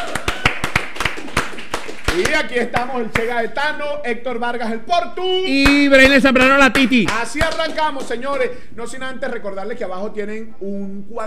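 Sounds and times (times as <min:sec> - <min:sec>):
applause: 0:00.0 - 0:03.3, 0:06.7 - 0:08.4
speech: 0:02.2 - 0:11.2.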